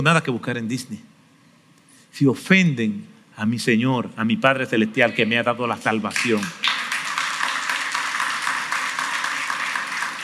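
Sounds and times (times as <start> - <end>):
speech: 0.0 - 1.1, 2.1 - 6.6
children clapping: 6.2 - 10.2.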